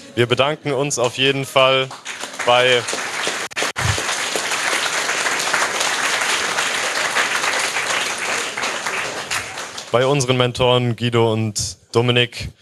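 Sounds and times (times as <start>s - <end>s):
speech: 0.2s - 3.0s, 9.9s - 12.5s
audience clapping loudly: 1.6s - 10.4s.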